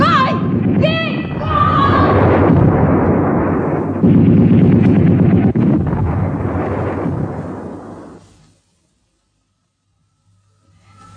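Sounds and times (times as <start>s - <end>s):
people talking: 0.0s - 2.3s
bomb explosion: 0.0s - 8.6s.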